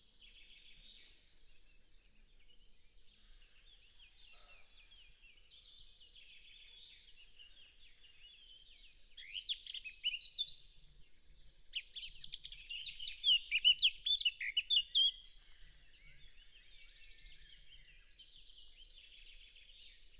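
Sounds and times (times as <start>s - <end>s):
Sylvia atricapilla singing: 9.1s - 10.9s, 11.5s - 15.2s.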